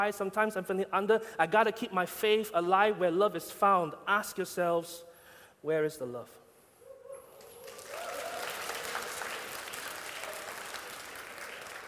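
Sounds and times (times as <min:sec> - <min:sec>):
speech: 0:00.0 - 0:06.4
audience clapping: 0:07.4 - 0:11.8.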